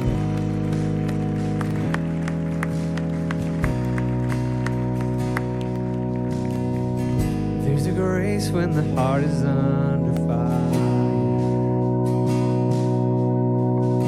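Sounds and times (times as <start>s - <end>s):
audience clapping: 0.0s - 7.6s
sustained organ-like chords: 0.0s - 14.0s
speech: 8.4s - 9.9s.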